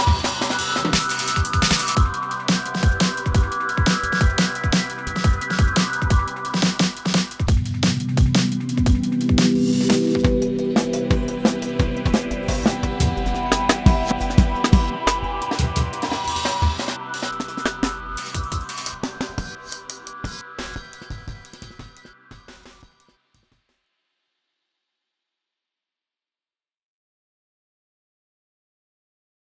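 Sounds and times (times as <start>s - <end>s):
sliced drum and bass breakbeat: 0.0s - 23.0s.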